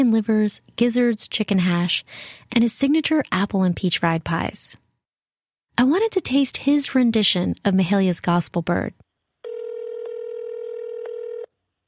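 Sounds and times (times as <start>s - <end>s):
speech: 0.0s - 4.8s, 5.8s - 9.0s
telephone tone of a call to an out-of-service number: 9.4s - 11.6s.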